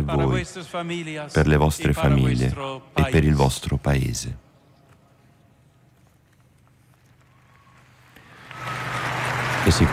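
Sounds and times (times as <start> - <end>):
speech: 0.1 - 4.4, 9.7 - 9.9
crowd applauding in a square: 7.5 - 9.9.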